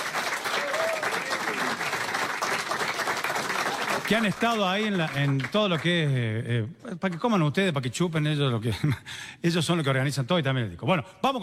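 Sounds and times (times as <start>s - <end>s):
crowd applauding: 0.0s - 6.2s
speech: 4.1s - 11.4s.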